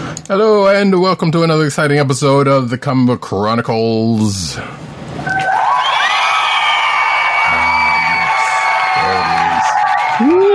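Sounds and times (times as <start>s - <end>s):
speech: 0.3s - 5.4s
applause and cheering crowd: 5.3s - 10.5s.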